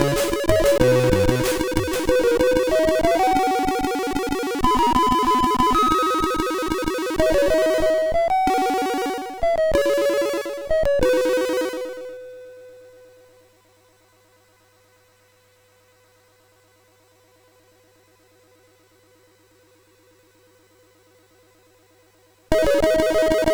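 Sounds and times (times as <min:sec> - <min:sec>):
SID chip MOS6581R4 music: 0:00.0 - 0:12.4, 0:22.5 - 0:23.5.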